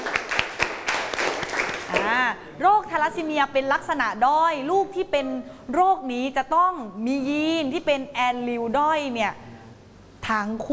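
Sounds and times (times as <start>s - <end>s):
students clapping in a classroom: 0.0s - 2.2s
speech: 2.3s - 9.4s, 10.3s - 10.7s.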